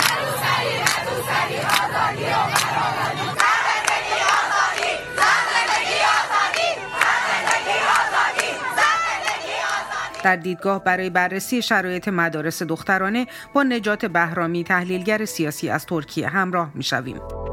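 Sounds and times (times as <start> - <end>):
schoolgirls chanting protest slogans in street: 0.0 - 10.2
speech: 10.2 - 17.4.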